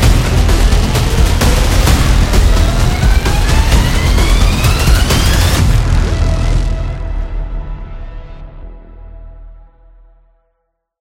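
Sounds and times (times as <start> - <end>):
battle drum: 0.0 - 7.1
intense trailer music: 0.0 - 10.3.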